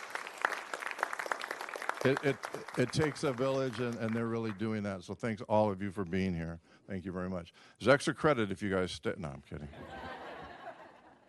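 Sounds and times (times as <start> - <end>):
audience applause: 0.0 - 4.7
speech: 2.0 - 10.0
laughter: 9.7 - 11.2.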